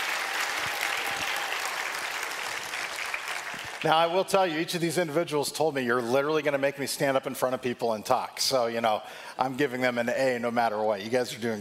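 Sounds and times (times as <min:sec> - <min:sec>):
audience applause: 0:00.0 - 0:04.1
speech: 0:03.8 - 0:11.5.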